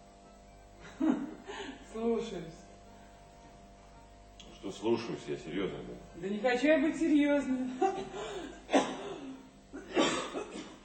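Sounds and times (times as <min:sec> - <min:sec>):
faint hum: 0:00.0 - 0:10.8
speech: 0:02.0 - 0:02.6, 0:04.6 - 0:08.8
person coughing harshly: 0:08.4 - 0:10.8.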